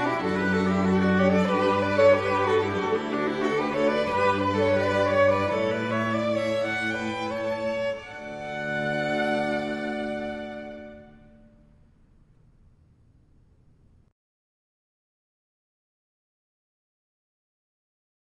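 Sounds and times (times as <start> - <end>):
string quartet playing canon: 0.0 - 11.3.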